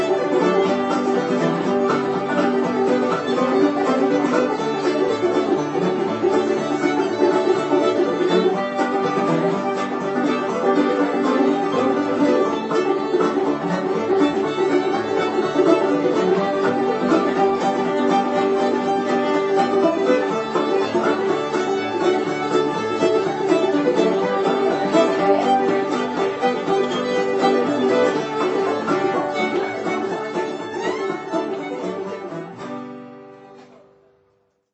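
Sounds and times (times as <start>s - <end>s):
banjo: 0.0s - 34.1s
fiddle: 0.0s - 34.1s
ukulele: 0.0s - 34.4s
guitar: 0.0s - 34.6s.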